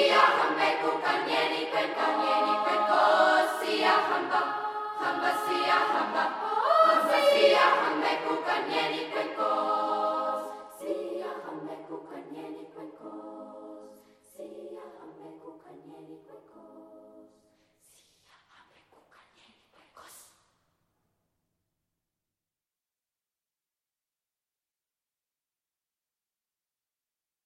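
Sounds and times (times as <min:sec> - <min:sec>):
choir singing: 0:00.0 - 0:17.5.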